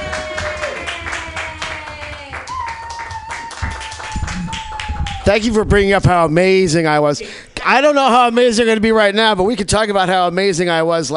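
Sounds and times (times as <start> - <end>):
open-mic comedy audience clapping: 0.0 - 6.1
speech: 5.3 - 11.1.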